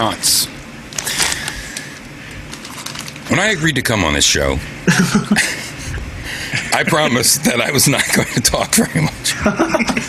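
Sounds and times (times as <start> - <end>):
speech: 0.0 - 1.2, 3.3 - 5.6, 6.8 - 10.0
crunching roasted corn kernels: 1.0 - 1.9, 2.5 - 3.3
laughter: 4.8 - 10.0.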